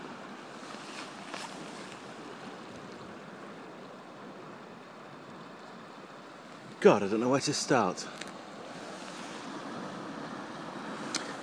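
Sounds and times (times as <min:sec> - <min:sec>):
sea waves washing: 0:00.0 - 0:11.4
speech: 0:06.8 - 0:08.3.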